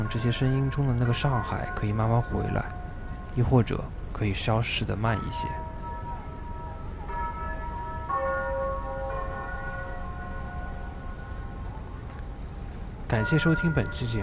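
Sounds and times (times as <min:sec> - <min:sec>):
Bund clock tower bell chiming: 0:00.0 - 0:14.2
speech: 0:00.1 - 0:02.8, 0:03.4 - 0:05.7, 0:13.1 - 0:14.2.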